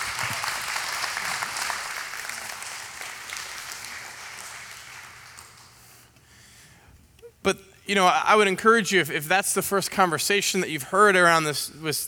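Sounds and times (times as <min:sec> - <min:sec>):
applause: 0:00.0 - 0:05.9
speech: 0:07.4 - 0:12.0.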